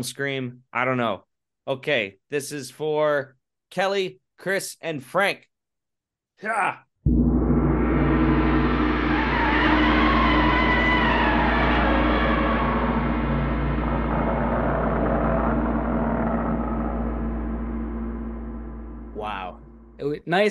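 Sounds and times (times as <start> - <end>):
speech: 0.0 - 5.5, 6.4 - 6.9, 20.0 - 20.4
gong strike: 7.1 - 20.1.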